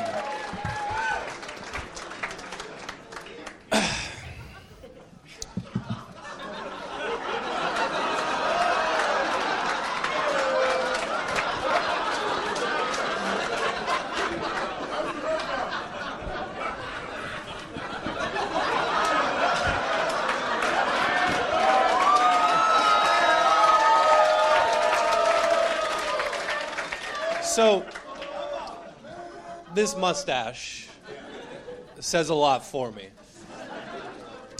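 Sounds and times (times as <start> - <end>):
audience cheering and applause: 0.0 - 4.9, 7.0 - 16.2, 16.8 - 29.0
laughter: 2.4 - 23.2, 27.6 - 32.1, 33.2 - 34.5
speech: 29.8 - 30.9, 32.0 - 33.2.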